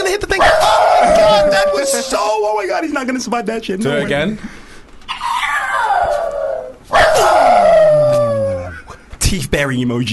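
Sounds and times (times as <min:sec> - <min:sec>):
dog yelping howls: 0:00.4 - 0:02.2, 0:05.1 - 0:08.8
speech: 0:01.8 - 0:04.6, 0:09.3 - 0:10.1.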